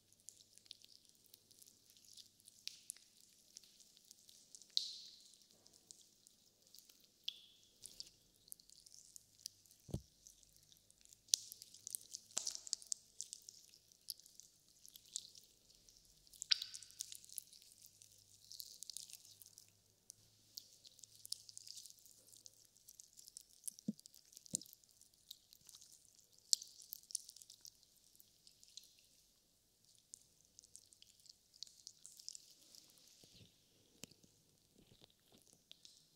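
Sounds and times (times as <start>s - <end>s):
slime being squished and handled: 0.2s - 29.2s, 29.8s - 36.1s.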